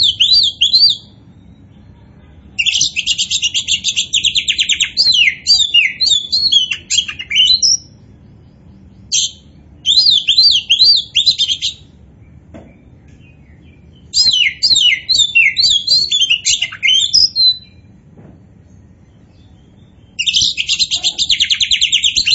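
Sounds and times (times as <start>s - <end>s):
Oriental magpie-robin singing: 0.0s - 1.7s, 2.6s - 8.0s, 9.1s - 11.9s, 13.2s - 17.9s, 19.4s - 22.3s.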